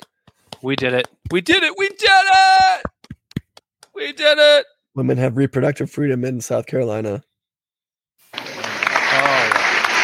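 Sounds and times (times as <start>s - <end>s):
speech: 0.6s - 2.9s, 4.0s - 7.3s
crowd applause: 8.3s - 10.0s.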